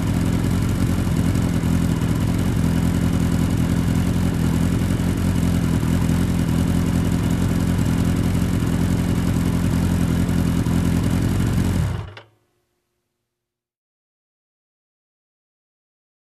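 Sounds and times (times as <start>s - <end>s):
heavy motorcycle engine running idle: 0.0s - 12.2s.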